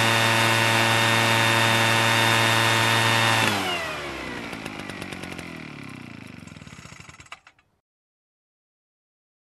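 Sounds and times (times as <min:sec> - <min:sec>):
garden vacuum running: 0:00.0 - 0:07.6.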